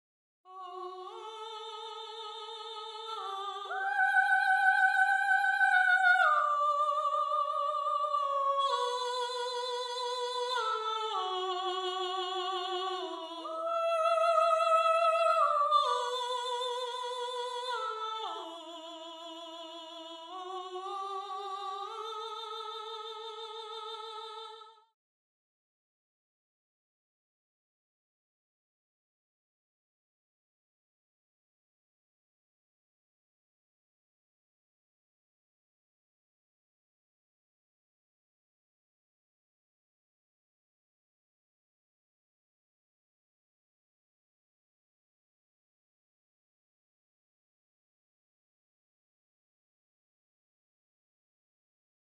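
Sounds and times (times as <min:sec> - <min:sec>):
soprano singing: 0:00.5 - 0:24.7.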